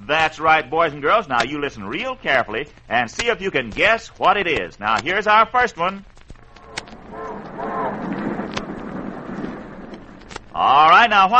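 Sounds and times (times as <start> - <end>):
speech: 0.1 - 6.1, 10.6 - 11.3
railroad train whistle: 6.6 - 8.7
railroad train running: 6.6 - 10.5.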